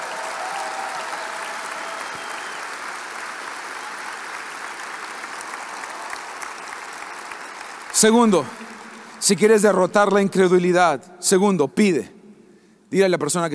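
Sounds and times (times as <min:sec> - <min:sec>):
audience applauding: 0:00.0 - 0:09.9
speech: 0:08.0 - 0:12.2, 0:12.9 - 0:13.5.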